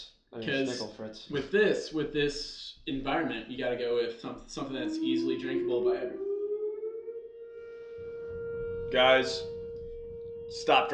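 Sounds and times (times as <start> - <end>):
speech: 0.0 - 6.3, 8.9 - 9.5, 10.5 - 10.9
tornado warning siren: 4.2 - 10.9.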